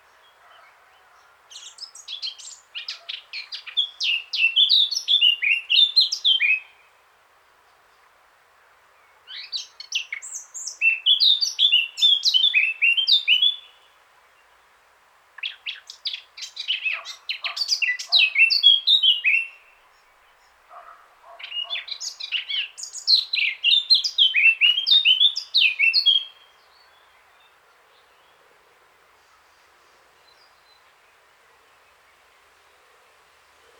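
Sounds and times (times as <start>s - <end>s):
Eurasian blackcap singing warble and fluty whistles: 1.6s - 6.9s, 9.3s - 13.8s, 15.4s - 19.7s, 21.4s - 27.6s.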